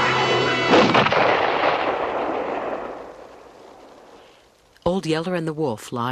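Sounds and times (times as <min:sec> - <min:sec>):
rifle gunshot: 0:00.7 - 0:03.8
speech: 0:05.0 - 0:06.1.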